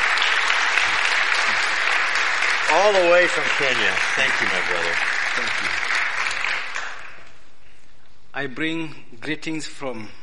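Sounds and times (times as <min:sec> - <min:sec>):
audience applause welcoming a pastor at a church service: 0:00.0 - 0:07.3
speech: 0:02.8 - 0:05.8, 0:08.4 - 0:10.2.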